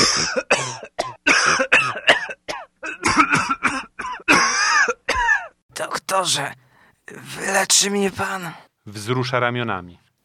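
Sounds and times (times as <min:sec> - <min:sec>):
harsh coughing: 0:00.0 - 0:05.6
speech: 0:06.2 - 0:10.0.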